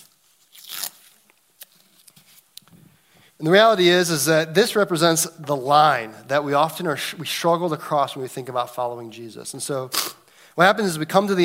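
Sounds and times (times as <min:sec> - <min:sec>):
painter's tape being torn from the roll: 0:00.0 - 0:02.6
speech: 0:03.4 - 0:11.4.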